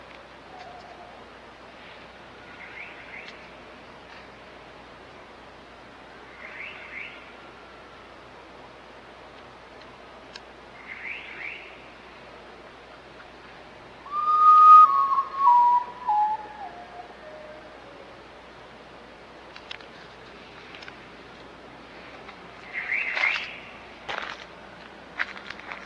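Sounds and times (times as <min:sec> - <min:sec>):
background hiss: 0:00.0 - 0:25.8
night bird whistled call: 0:10.8 - 0:11.7, 0:14.1 - 0:18.0, 0:22.7 - 0:23.6.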